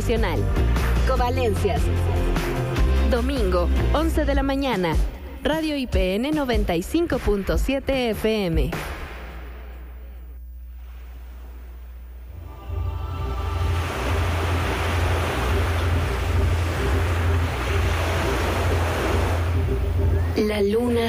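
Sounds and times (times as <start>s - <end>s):
speech: 0.1s - 8.9s
ocean waves surging and roaring: 12.3s - 20.5s.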